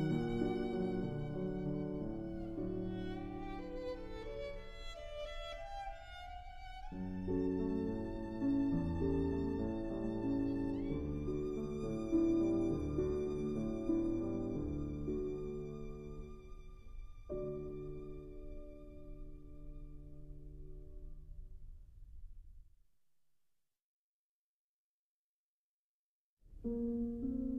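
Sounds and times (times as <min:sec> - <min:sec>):
violin: 0:00.0 - 0:20.8
piano: 0:00.0 - 0:22.7, 0:26.5 - 0:27.5.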